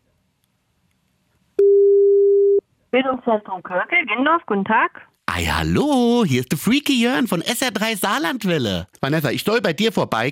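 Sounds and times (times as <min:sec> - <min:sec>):
telephone ringback tone: 0:01.6 - 0:02.6
speech: 0:02.9 - 0:10.2.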